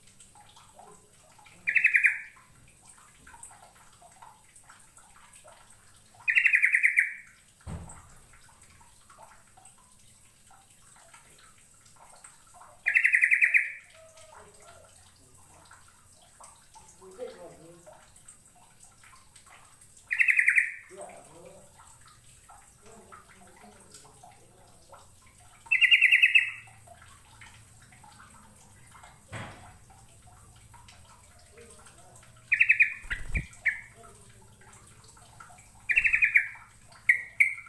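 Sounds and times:
bird chirping: 1.6 - 2.3, 6.3 - 7.2, 12.9 - 14.1, 20.1 - 20.8, 25.7 - 26.6, 32.5 - 34.0, 35.9 - 37.6
low thump: 7.7 - 8.0.

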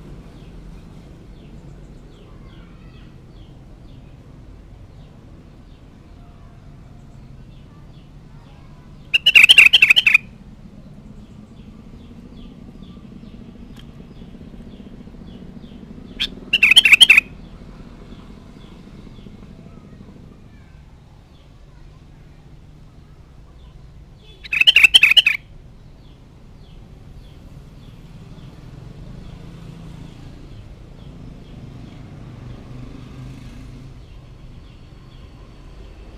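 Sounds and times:
sooty-headed bulbul song: 9.0 - 10.4, 14.3 - 17.7, 24.2 - 25.5.

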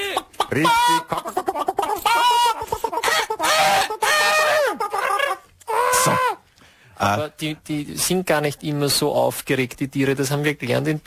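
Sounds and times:
speech: 0.5 - 1.4, 7.0 - 11.0
rooster crowing: 2.1 - 6.4.

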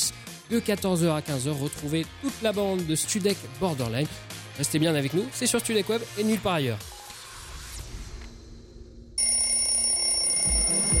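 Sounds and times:
speech: 0.1 - 6.9
bright electronic alarm clock ringing in a radio station jingle: 9.2 - 10.9.

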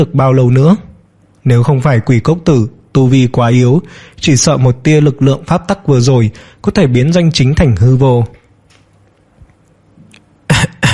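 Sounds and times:
speech: 0.0 - 8.4
dry coughing: 10.5 - 10.9.

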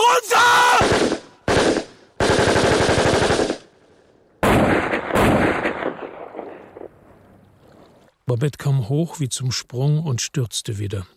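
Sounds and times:
gunfire from an automatic weapon: 0.8 - 3.6, 4.4 - 6.6
speech: 8.3 - 11.1.

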